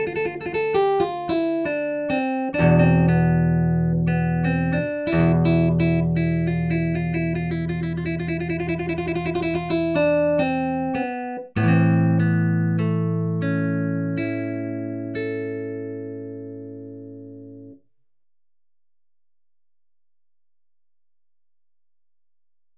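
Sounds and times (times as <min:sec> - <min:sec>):
simulated Spanish guitar improvisation: 0:00.0 - 0:17.8.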